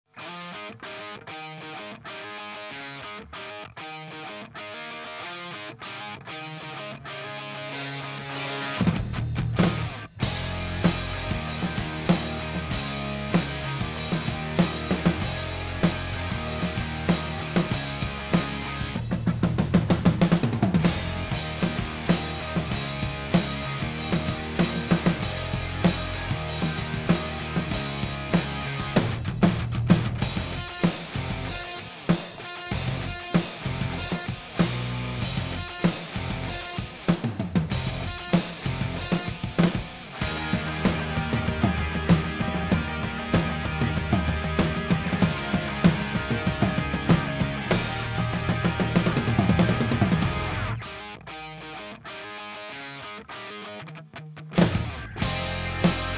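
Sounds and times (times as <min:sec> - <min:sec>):
rock music mix: 0:00.2 - 0:53.8, 0:54.5 - 0:56.1.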